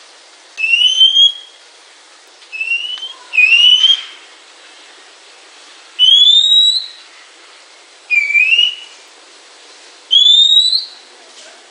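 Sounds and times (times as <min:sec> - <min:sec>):
Oriental magpie-robin giving sweet drawn-out whistles: 0:00.6 - 0:01.6, 0:02.5 - 0:04.2, 0:06.0 - 0:07.0, 0:08.1 - 0:09.0, 0:10.1 - 0:11.0.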